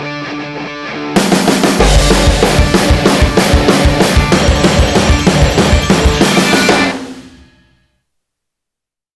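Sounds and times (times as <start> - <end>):
instrumental music: 1.2 - 7.8.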